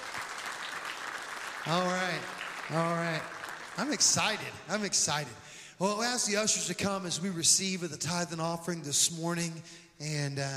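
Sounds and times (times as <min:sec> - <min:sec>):
congregation clapping at a church service: 0:00.0 - 0:05.4
speech: 0:01.6 - 0:10.5.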